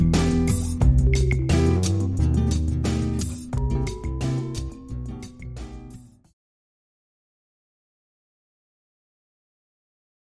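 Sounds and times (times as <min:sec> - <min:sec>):
acid jazz music: 0:00.0 - 0:06.2.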